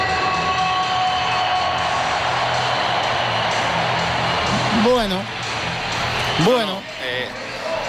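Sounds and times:
stadium crowd applauding: 0:00.2 - 0:07.8.

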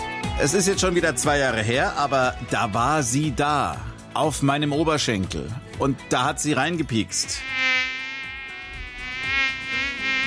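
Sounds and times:
speech: 0:00.4 - 0:07.9
Asian tiger mosquito buzzing: 0:07.3 - 0:10.2.

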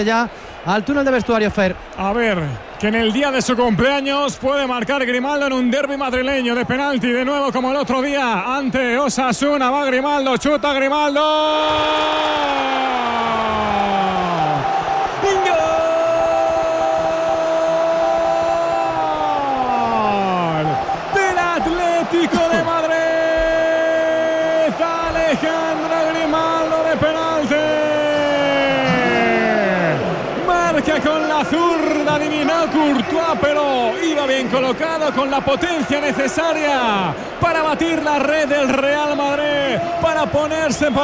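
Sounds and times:
speech: 0:00.0 - 0:13.3, 0:31.0 - 0:41.0
stadium crowd roaring after a penalty goal in a Madrid derby: 0:00.0 - 0:41.0
whistling: 0:09.8 - 0:11.8, 0:40.6 - 0:41.0.

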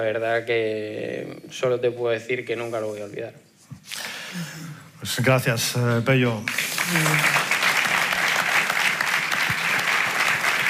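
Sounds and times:
speech: 0:00.0 - 0:07.5
applause from a large crowd: 0:06.5 - 0:10.6.

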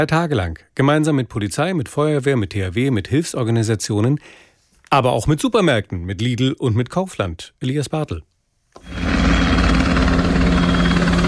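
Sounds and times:
speech: 0:00.0 - 0:09.0
helicopter flying over a city: 0:08.8 - 0:11.2.

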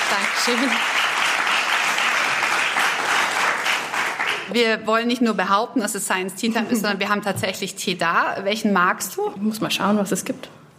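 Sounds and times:
live studio audience applause in Studio Franken: 0:00.0 - 0:04.5
speech: 0:00.1 - 0:01.1, 0:04.5 - 0:10.6.

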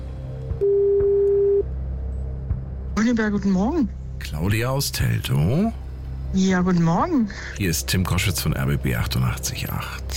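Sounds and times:
quiet phone line hum: 0:00.5 - 0:01.8
ringback tone on outgoing phone call: 0:00.6 - 0:01.7
speech: 0:03.1 - 0:10.1.

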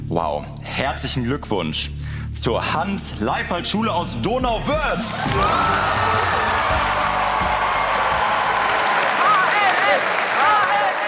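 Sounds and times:
speech: 0:00.1 - 0:07.2
school crowd cheering: 0:05.1 - 0:11.0.

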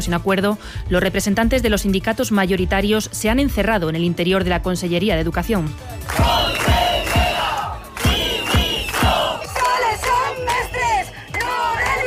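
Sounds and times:
speech: 0:00.0 - 0:06.6
protesting teachers shouting outside: 0:06.1 - 0:12.0.

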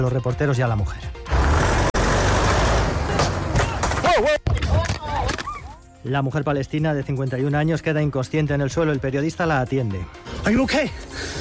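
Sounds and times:
speech: 0:00.0 - 0:01.3, 0:04.2 - 0:04.4, 0:06.0 - 0:11.3
engine and road rumble: 0:01.1 - 0:04.0
car stopping abruptly in the street: 0:01.3 - 0:03.6.

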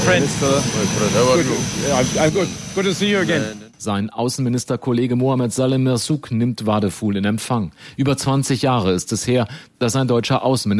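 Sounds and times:
airplane engine: 0:00.0 - 0:03.8
speech: 0:00.0 - 0:10.7.

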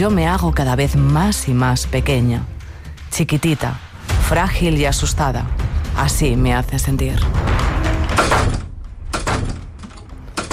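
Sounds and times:
speech: 0:00.0 - 0:07.6
doors opening and shutting: 0:07.4 - 0:10.5.

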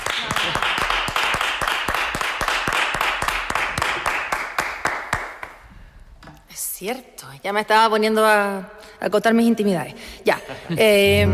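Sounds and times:
audience applause: 0:00.0 - 0:05.4
speech: 0:06.8 - 0:11.3.

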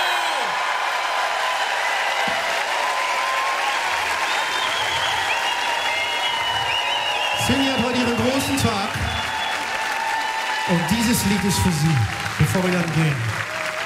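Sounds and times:
large audience applause: 0:00.0 - 0:13.8
whistles: 0:03.6 - 0:10.4
speech: 0:10.7 - 0:13.5.

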